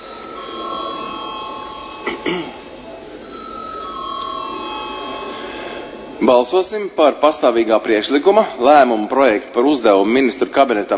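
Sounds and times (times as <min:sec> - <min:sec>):
parliament chamber bell rung before vote: 0:00.0 - 0:02.2, 0:03.2 - 0:05.5
speech: 0:02.2 - 0:02.6, 0:06.2 - 0:10.9.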